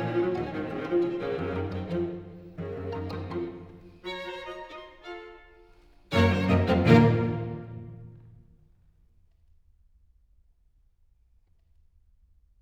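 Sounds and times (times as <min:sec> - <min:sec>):
string quartet: 0:00.0 - 0:08.4.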